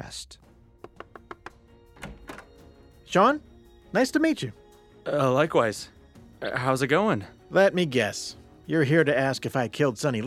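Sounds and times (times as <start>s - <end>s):
speech: 0.0s - 0.4s, 3.1s - 10.2s
knocking on a door: 0.8s - 2.6s.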